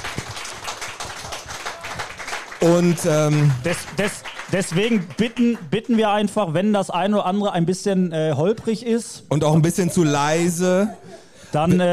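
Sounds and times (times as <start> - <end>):
audience applause: 0.0 - 5.7
speech: 2.6 - 11.9.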